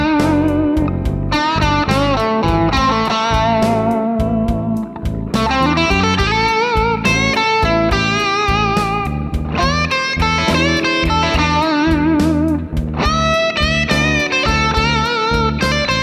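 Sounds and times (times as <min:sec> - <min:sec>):
blues guitar solo: 0:00.0 - 0:16.0.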